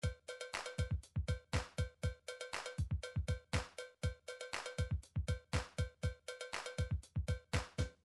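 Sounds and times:
midi music: 0:00.0 - 0:08.0.

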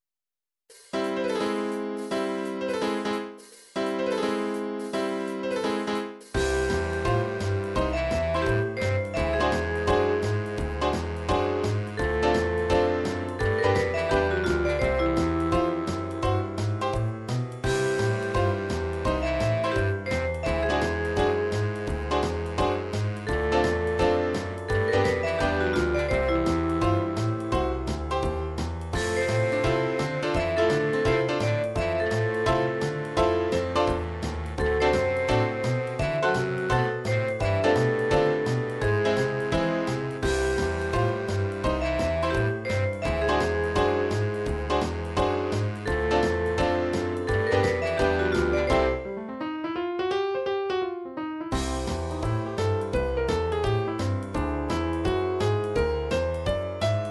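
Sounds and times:
jazz music: 0:00.7 - 0:50.1, 0:51.5 - 0:57.0.

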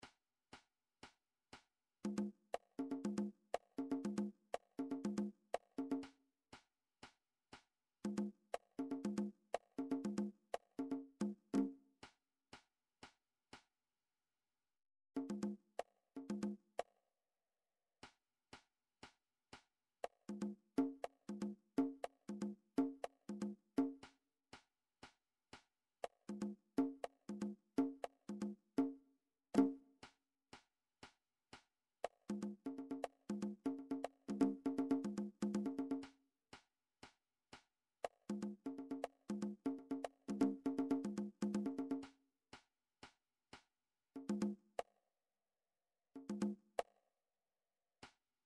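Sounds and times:
conga drum: 0:02.0 - 0:06.2, 0:08.1 - 0:11.8, 0:15.2 - 0:16.6, 0:20.0 - 0:24.1, 0:26.0 - 0:29.0, 0:29.6 - 0:29.8, 0:32.0 - 0:36.2, 0:38.0 - 0:42.2, 0:44.2 - 0:44.9, 0:46.2 - 0:46.9.

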